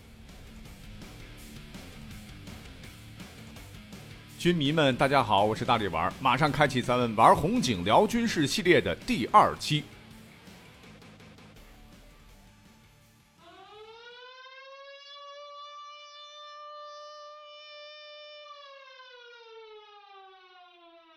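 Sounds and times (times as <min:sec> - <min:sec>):
air raid siren wailing: 0:04.4 - 0:09.6, 0:13.3 - 0:21.1
speech: 0:04.4 - 0:09.9.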